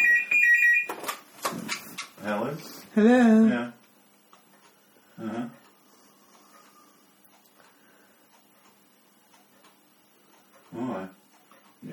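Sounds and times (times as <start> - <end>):
phone ringing with electronic trill: 0.0 - 1.2
speech: 2.2 - 3.8.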